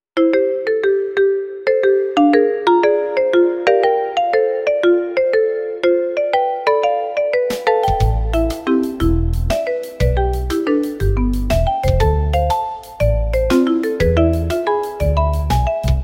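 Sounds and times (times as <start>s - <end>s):
marimba: 0.2s - 16.0s.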